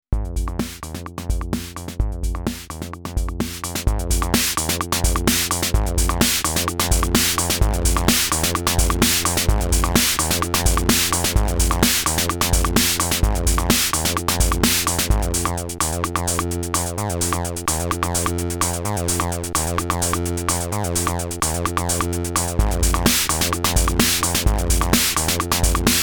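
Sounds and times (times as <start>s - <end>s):
Akai Rhythm Wolf drum machine howl: 0.2s - 26.0s.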